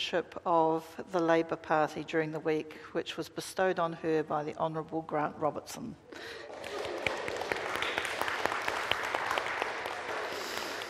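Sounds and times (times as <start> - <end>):
speech: 0.0 - 6.7
audience applause: 6.4 - 10.8.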